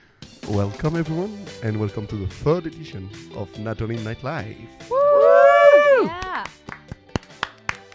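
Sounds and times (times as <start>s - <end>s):
speech: 0.5s - 5.1s, 6.0s - 6.5s
hands clapping: 5.8s - 7.9s.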